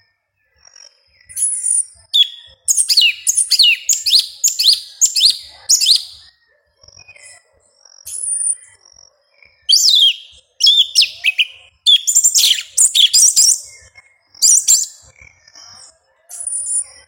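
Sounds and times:
Yellow-legged Thrush singing: 2.2s - 6.2s, 9.7s - 13.7s.

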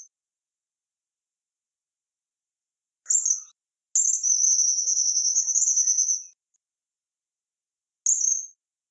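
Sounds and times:
Tropical kingbird song: 3.1s - 6.4s.

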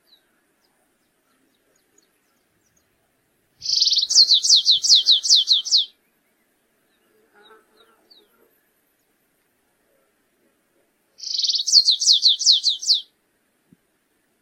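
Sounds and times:
stripe-tailed yellow finch song with buzzing trill and down-slurred notes: 3.6s - 5.9s, 11.2s - 13.1s.

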